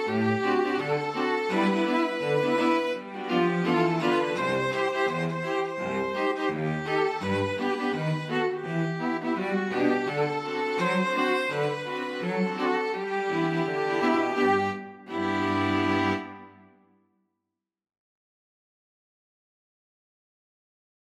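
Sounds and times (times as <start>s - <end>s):
string quartet playing: 0.0s - 16.7s.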